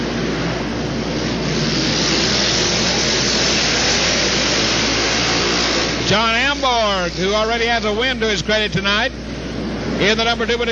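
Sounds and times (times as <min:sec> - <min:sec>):
racing lawn mower engines roaring around a race track: 0:00.0 - 0:10.6
speech: 0:07.1 - 0:09.3, 0:10.0 - 0:10.6.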